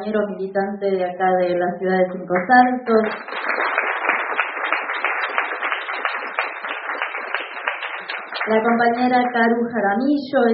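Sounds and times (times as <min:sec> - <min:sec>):
speech: 0:00.0 - 0:03.8, 0:08.5 - 0:10.5
crowd applauding: 0:03.0 - 0:09.1.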